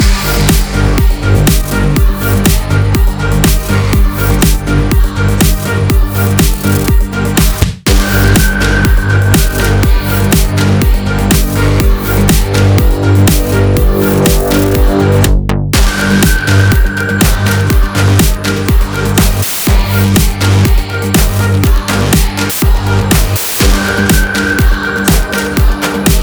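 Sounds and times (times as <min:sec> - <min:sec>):
combat music loop in four-four: 0:00.0 - 0:26.2.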